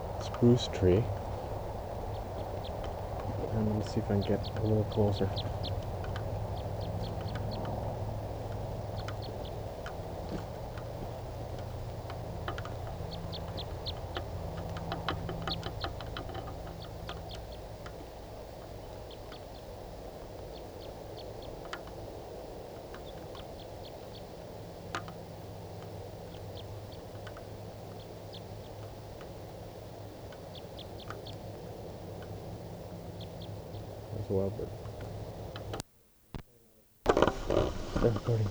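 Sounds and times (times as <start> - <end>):
steady low rumble of noise: 0.0 - 35.8, 37.1 - 38.4
type 3 wild bird giving short high chip calls: 0.0 - 35.8, 37.1 - 38.4
speech: 0.4 - 1.2, 3.6 - 5.8.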